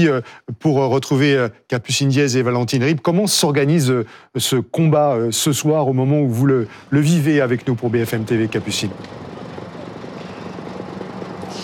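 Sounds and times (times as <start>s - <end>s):
speech: 0.0s - 9.3s
Dragon firefighting helicopter flying overhead: 7.7s - 11.6s.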